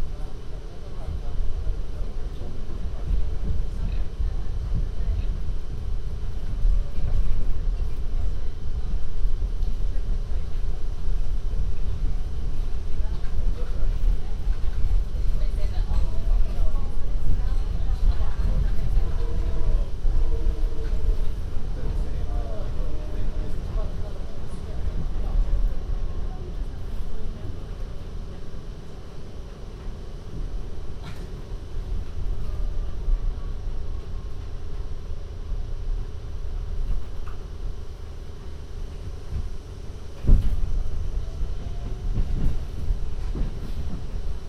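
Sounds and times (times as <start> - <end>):
MTA vehicle rumbling in New York: 0.0 - 44.4
faint voices: 0.0 - 44.4.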